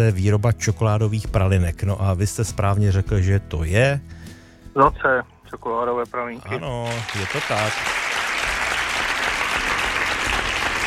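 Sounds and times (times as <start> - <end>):
speech: 0.0 - 8.0
crowd applause: 6.6 - 10.8.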